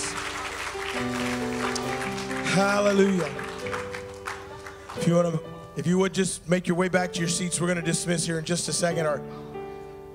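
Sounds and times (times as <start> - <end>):
audience hand clap of praise: 0.0 - 5.7
sustained organ or keyboard chords: 0.0 - 10.1
speech: 2.6 - 3.4, 5.0 - 9.5.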